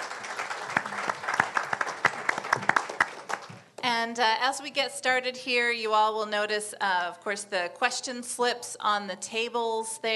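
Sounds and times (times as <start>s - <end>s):
audience applause: 0.0s - 3.6s
speech: 3.8s - 10.1s.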